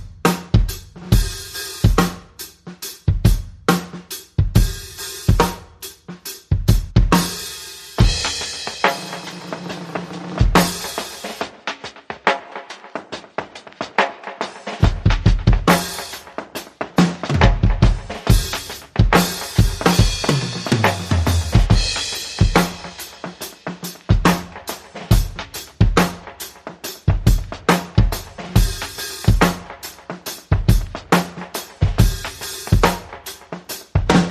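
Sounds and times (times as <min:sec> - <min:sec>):
drum groove: 0:00.0 - 0:34.3
percussion: 0:07.1 - 0:34.3.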